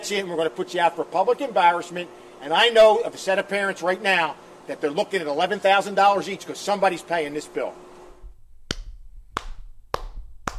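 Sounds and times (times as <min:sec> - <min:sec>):
speech: 0:00.1 - 0:07.9
person clapping alone: 0:08.7 - 0:10.5.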